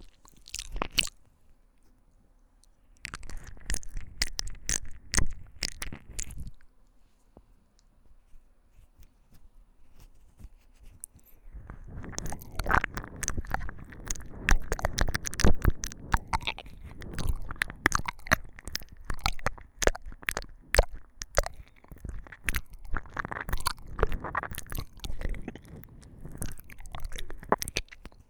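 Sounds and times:
wet splashy ear licking ASMR: 0.0s - 1.2s, 3.0s - 6.7s, 10.8s - 28.2s.

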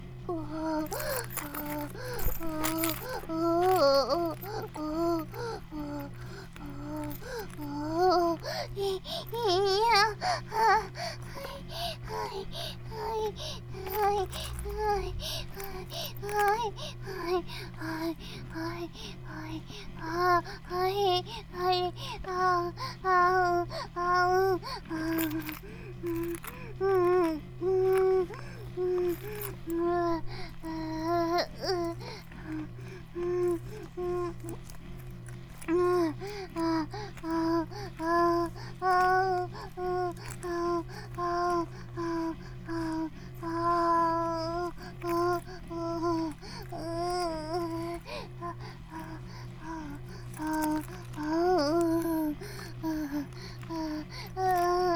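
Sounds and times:
vibrator buzzing: 0.0s - 54.9s.

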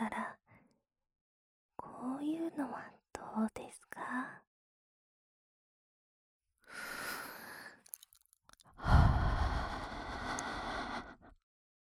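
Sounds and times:
speech: 2.1s - 4.5s
warm breath blown into the ear: 8.8s - 11.2s.

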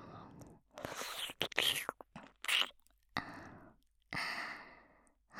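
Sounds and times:
ear licking sounds: 0.8s - 2.8s.

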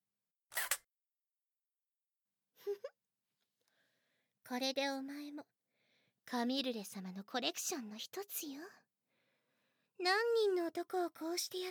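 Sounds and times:
camera shutter taking a photo: 0.5s - 0.8s
speech: 4.5s - 5.6s, 6.3s - 8.9s, 10.0s - 11.6s.

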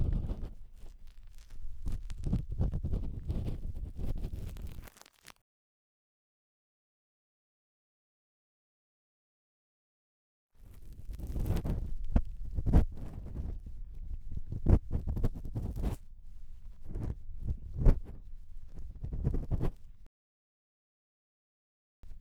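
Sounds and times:
bamboo ear pick scraping deep inside right ear: 0.0s - 4.9s, 10.7s - 20.1s, 22.0s - 22.2s.

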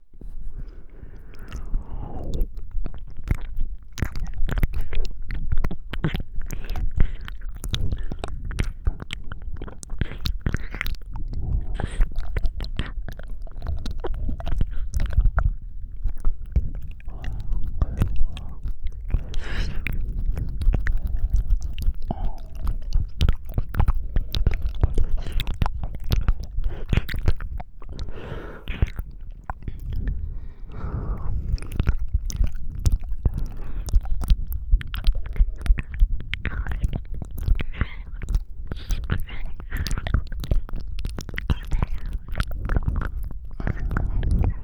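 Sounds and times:
deep ear licking sounds: 0.0s - 44.6s.

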